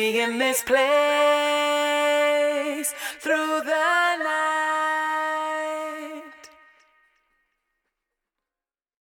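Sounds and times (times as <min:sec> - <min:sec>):
a cappella singing: 0:00.0 - 0:07.0.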